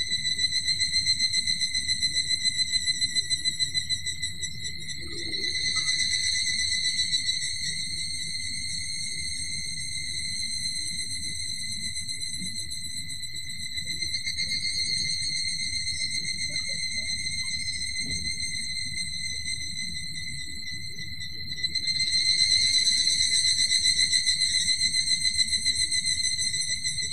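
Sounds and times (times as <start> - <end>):
evening cicada calling with high ringing pulsed trill: 0.0 - 27.1.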